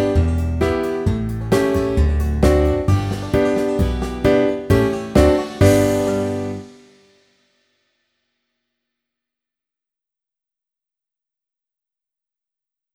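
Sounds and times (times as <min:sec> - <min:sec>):
Western hoedown music performance: 0:00.0 - 0:07.0.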